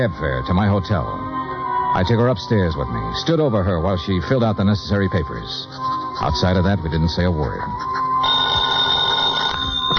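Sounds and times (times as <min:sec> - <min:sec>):
speech: 0:00.0 - 0:01.3, 0:02.0 - 0:08.0
telephone bell ringing: 0:08.2 - 0:09.9.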